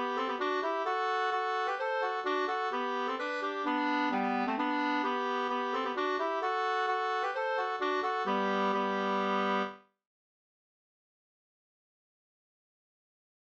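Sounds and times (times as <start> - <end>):
hambo polska dance tune: 0.0 - 9.7.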